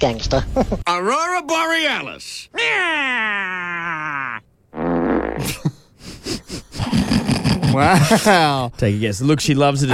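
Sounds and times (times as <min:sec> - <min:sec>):
speech: 0:00.0 - 0:04.2, 0:07.7 - 0:09.9
fart noise sound effect: 0:04.7 - 0:05.6.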